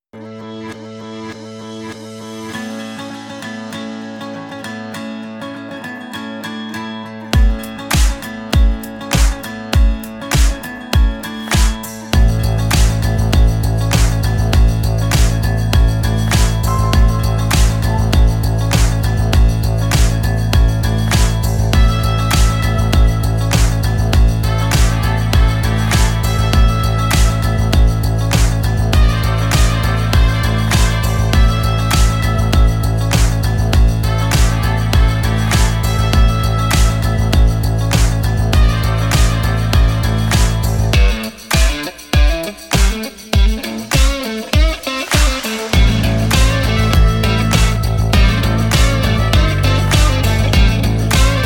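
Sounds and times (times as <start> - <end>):
music: 0.0 - 51.4.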